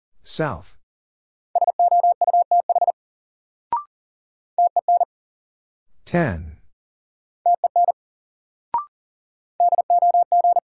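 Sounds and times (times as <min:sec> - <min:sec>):
speech: 0:00.3 - 0:00.8, 0:06.1 - 0:06.6
Morse code beeps spelling a word: 0:01.6 - 0:03.0, 0:04.6 - 0:05.1, 0:07.5 - 0:08.0, 0:09.6 - 0:10.6.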